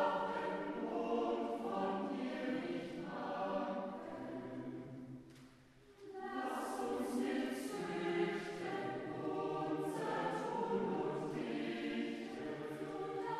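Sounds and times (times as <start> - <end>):
choir and jubilee choir singing: 0.0 - 13.3.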